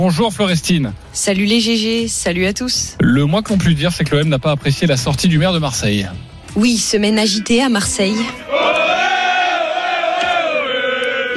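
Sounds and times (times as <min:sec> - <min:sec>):
speech: 0:00.0 - 0:08.8
supporters chanting at Marignane airport to greet Mason Greenwood: 0:07.1 - 0:11.3.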